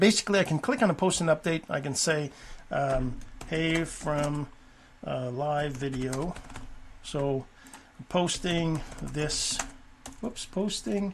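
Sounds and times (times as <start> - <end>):
speech: 0.0 - 11.1
typing a post on a computer keyboard: 2.8 - 4.5, 5.6 - 7.8, 8.4 - 10.3.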